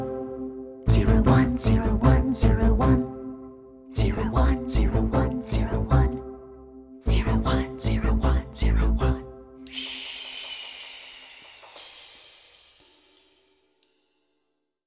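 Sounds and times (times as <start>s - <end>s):
vocal: 0.9s - 3.2s, 3.9s - 6.3s, 7.0s - 9.3s.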